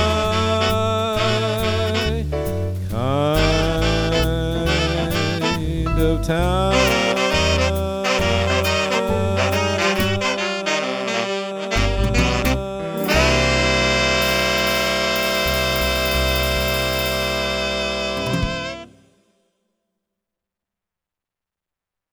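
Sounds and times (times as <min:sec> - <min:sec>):
saxophone: 0:00.0 - 0:02.4, 0:03.3 - 0:19.4
piano: 0:00.0 - 0:19.2
person singing: 0:03.0 - 0:18.5.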